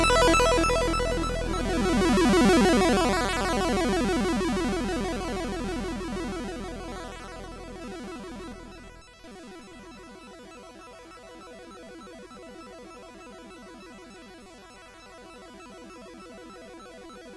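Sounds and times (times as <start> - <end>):
MOS 6581R2 SID chip music: 0.0 - 6.9.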